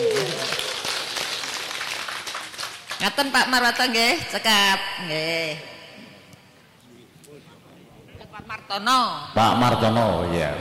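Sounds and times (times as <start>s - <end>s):
audience applause for the regent of Bojonegoro at a public event: 0.0s - 3.0s
speech: 3.0s - 5.7s, 8.5s - 10.5s.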